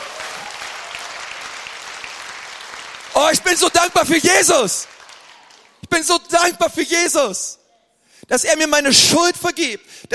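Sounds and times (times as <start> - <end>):
crowd clapping: 0.0 - 6.2
speech: 3.2 - 5.0, 6.0 - 7.6, 8.3 - 10.1.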